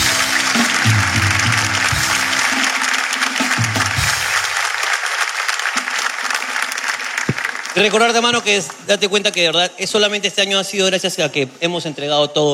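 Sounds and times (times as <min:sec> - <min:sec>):
audience applause: 0:00.0 - 0:09.1
speech: 0:07.8 - 0:12.5.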